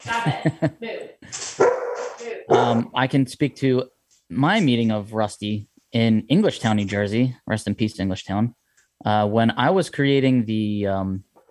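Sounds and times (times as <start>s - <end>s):
speech: 0.0s - 0.9s, 2.6s - 11.3s
German Shepherd dog barking: 1.6s - 2.9s.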